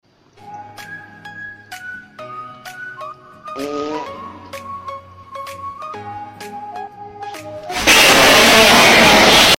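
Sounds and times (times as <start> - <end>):
fart: 7.7 - 9.5.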